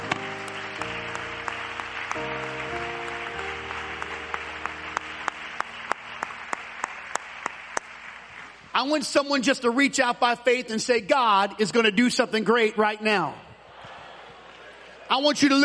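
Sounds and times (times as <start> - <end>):
sustained keyboard chords: 0.0 - 8.3
audience clapping hands: 0.0 - 9.0
speech: 8.8 - 13.4, 15.1 - 15.6.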